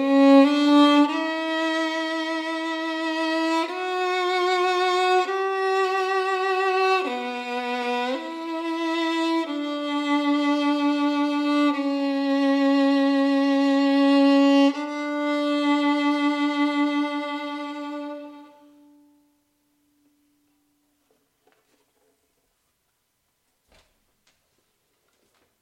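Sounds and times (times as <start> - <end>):
Stradivarius violin: 0.0 - 19.5.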